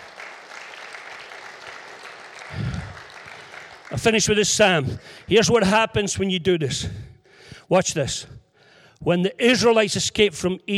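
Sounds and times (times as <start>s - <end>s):
audience applauding: 0.0s - 5.7s
speech: 3.9s - 7.1s, 7.7s - 8.4s, 9.0s - 10.7s.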